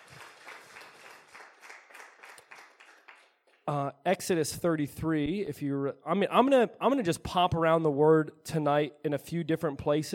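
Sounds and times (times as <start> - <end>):
audience applause: 0.0 - 3.5
speech: 3.7 - 10.1.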